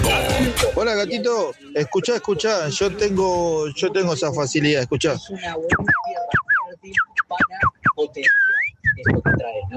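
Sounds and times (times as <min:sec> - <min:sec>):
speech: 0:00.9 - 0:06.0, 0:06.9 - 0:08.4, 0:09.0 - 0:09.7
person whistling imitation of female canary in heat: 0:05.7 - 0:09.4.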